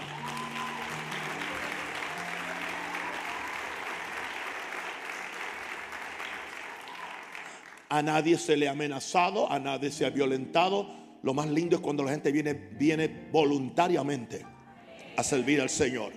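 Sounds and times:
crowd applauding: 0.0s - 8.1s
speech: 7.9s - 14.5s, 15.2s - 16.1s.

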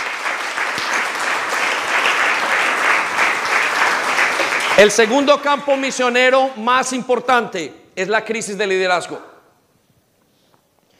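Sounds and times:
audience applause: 0.0s - 5.3s
speech: 4.8s - 9.3s.

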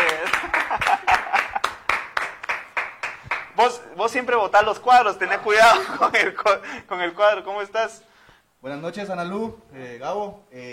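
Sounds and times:
laughter: 0.0s - 1.9s, 5.2s - 6.6s
applause: 0.0s - 3.6s
speech: 3.6s - 10.7s.

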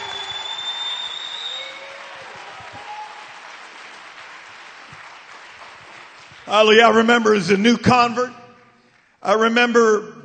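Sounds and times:
audience clapping: 0.0s - 7.1s
speech: 6.5s - 8.4s, 9.2s - 10.1s.

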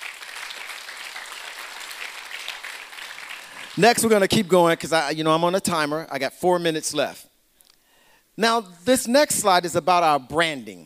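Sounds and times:
audience clapping hands: 0.0s - 3.9s
speech: 3.8s - 7.3s, 8.4s - 10.8s.

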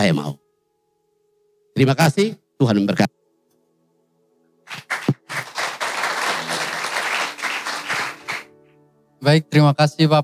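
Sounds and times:
speech: 0.0s - 0.4s, 1.8s - 3.2s, 9.2s - 10.2s
seminar audience applause for a speaker: 4.7s - 8.5s.

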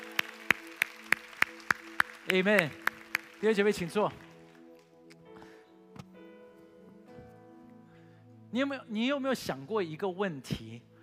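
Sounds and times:
audience applause: 0.0s - 4.6s
speech: 2.3s - 2.8s, 3.4s - 4.2s, 8.5s - 10.9s.

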